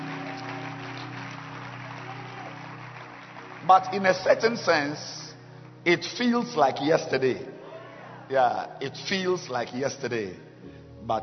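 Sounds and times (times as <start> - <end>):
people clapping hands: 0.0 - 5.8
speech: 3.6 - 5.2, 5.8 - 7.5, 8.3 - 11.2.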